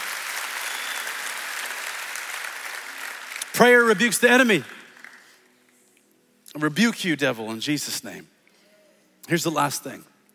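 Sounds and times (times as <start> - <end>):
audience clapping hands: 0.0 - 5.4
speech: 3.6 - 4.8, 6.6 - 8.4, 9.3 - 10.1.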